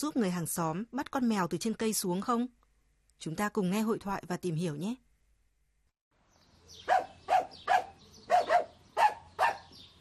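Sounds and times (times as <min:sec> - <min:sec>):
speech: 0:00.0 - 0:02.6, 0:03.2 - 0:05.0
dog barking: 0:06.8 - 0:09.9.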